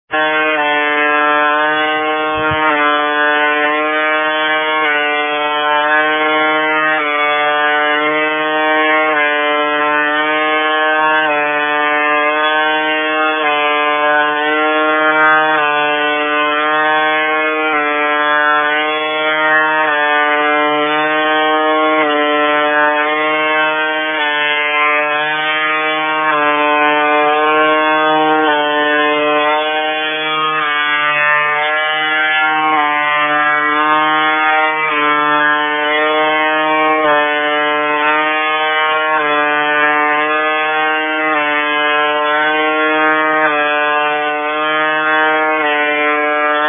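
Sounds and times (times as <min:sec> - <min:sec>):
wild buzzer: 0:00.0 - 0:46.6.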